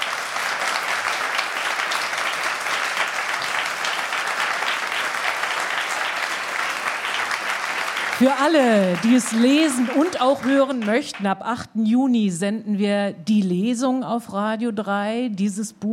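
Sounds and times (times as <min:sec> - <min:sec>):
audience applause: 0:00.0 - 0:11.2
speech: 0:08.2 - 0:15.9.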